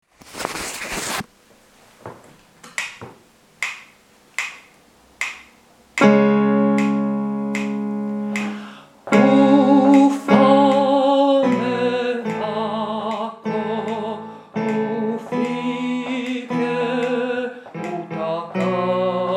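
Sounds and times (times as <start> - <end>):
tenor singing: 6.6 - 19.3.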